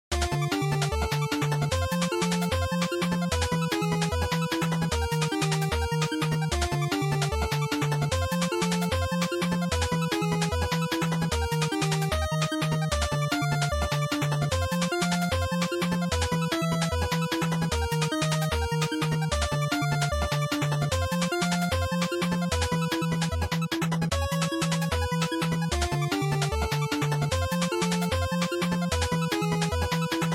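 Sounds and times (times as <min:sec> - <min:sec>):
NES shooter game boss music: 0:00.1 - 0:30.3.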